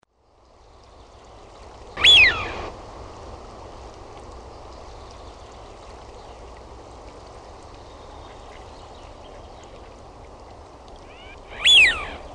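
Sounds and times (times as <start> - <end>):
Eurasian wigeon whistle: 2.0 - 2.7, 11.1 - 12.2.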